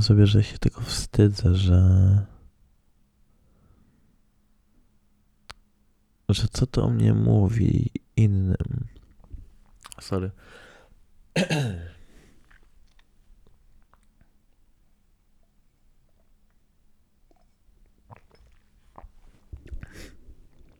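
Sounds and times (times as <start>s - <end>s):
speech: 0.0s - 2.4s, 6.3s - 8.9s, 10.0s - 10.6s, 11.4s - 11.9s
rough breathy sounds: 10.4s - 11.0s
loud harsh cough: 11.3s - 12.0s
soft throat-clearing noises: 11.4s - 12.1s.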